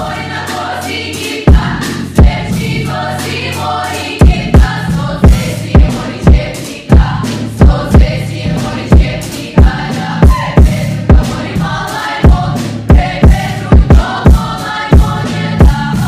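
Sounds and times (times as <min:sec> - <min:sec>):
kick drum: 0:01.5 - 0:02.4, 0:04.2 - 0:08.2, 0:08.9 - 0:11.4, 0:12.2 - 0:15.8.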